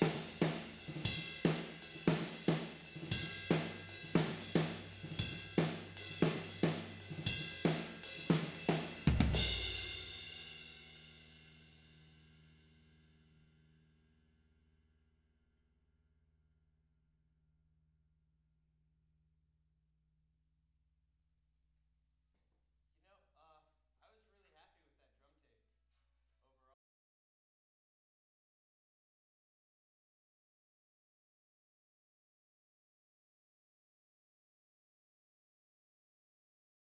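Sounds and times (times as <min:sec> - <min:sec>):
tom drums: 0:00.0 - 0:11.0.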